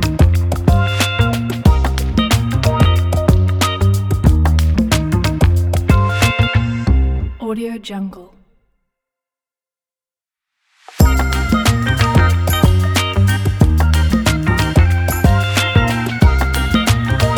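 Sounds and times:
funk music for advertising: 0.0 - 7.4, 11.0 - 17.3.

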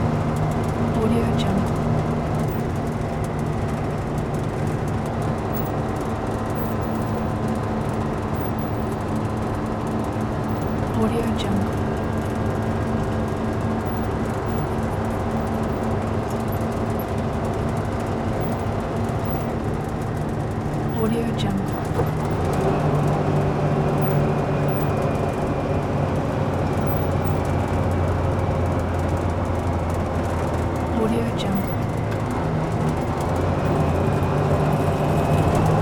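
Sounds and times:
semi truck Detroit Diesel engine heard from interior cab: 0.0 - 35.8.

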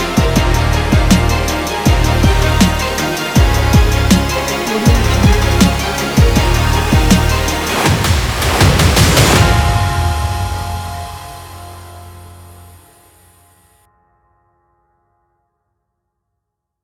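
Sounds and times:
epic hip hop music: 0.0 - 13.3.

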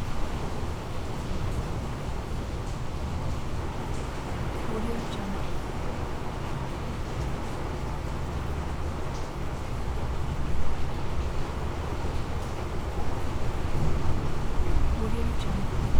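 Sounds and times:
heavy rain storm heard indoors: 0.0 - 15.9.

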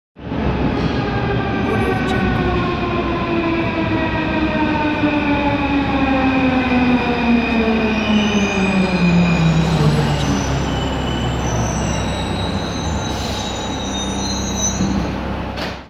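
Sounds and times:
metro train arriving: 0.2 - 15.8.

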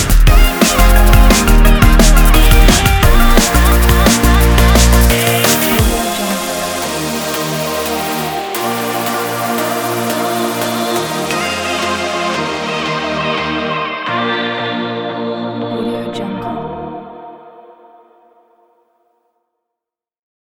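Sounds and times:
drum and bass music: 0.0 - 15.0.

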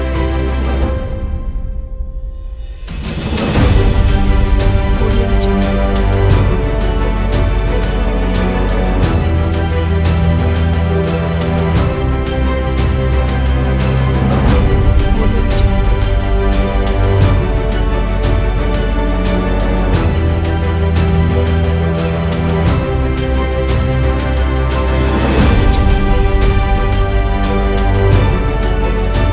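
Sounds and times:
inspiring emotional piano with orchestra: 0.0 - 29.3.

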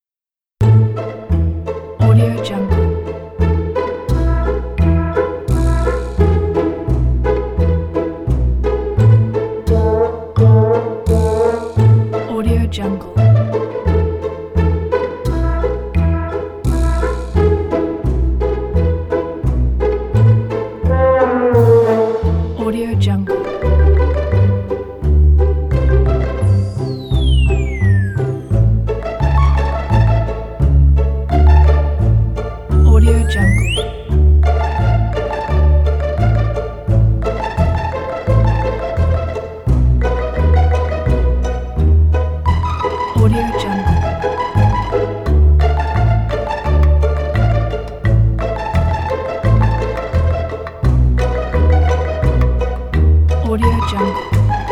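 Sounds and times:
comic music: 0.6 - 54.7.

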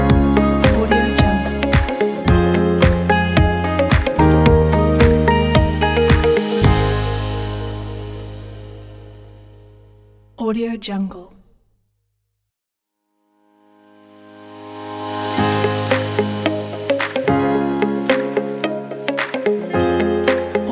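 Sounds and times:
business corporate background music: 0.0 - 8.8, 14.6 - 20.7.

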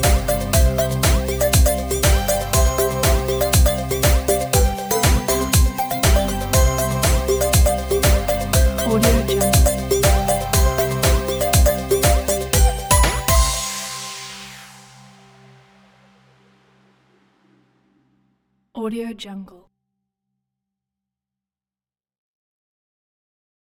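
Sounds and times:
retro 8-bit magical adventure music: 0.0 - 14.4.

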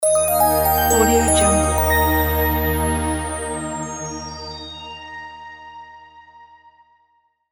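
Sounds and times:
corporate logo jingle: 0.0 - 5.7.

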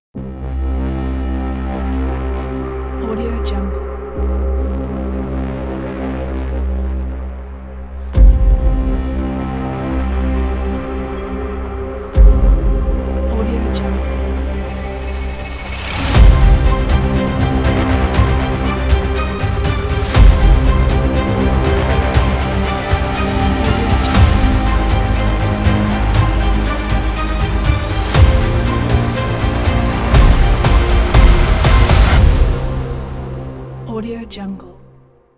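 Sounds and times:
intense trailer music: 0.1 - 35.3.

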